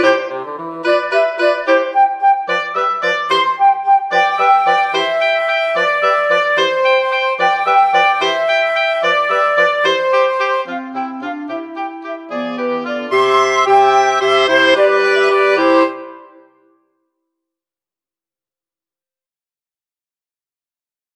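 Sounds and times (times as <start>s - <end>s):
wind quartet playing: 0.0s - 16.5s.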